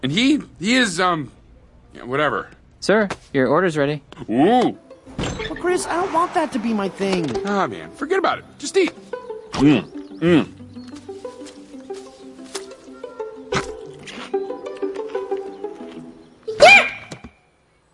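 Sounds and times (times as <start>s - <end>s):
speech: 0.0s - 1.4s, 2.0s - 10.6s
squeaky sneezes: 16.5s - 17.1s.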